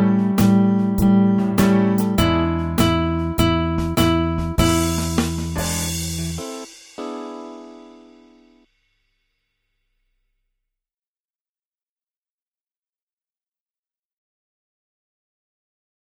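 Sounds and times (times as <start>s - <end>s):
blues solo: 0.0s - 6.7s.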